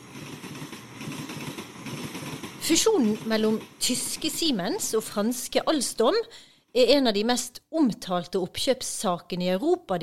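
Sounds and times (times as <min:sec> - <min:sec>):
train rumbling: 0:00.0 - 0:05.6
speech: 0:02.7 - 0:10.0.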